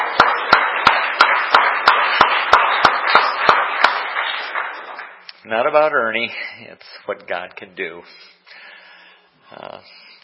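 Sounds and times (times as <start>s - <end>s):
audience clapping: 0.0s - 5.9s
speech: 5.5s - 8.6s, 9.5s - 10.0s.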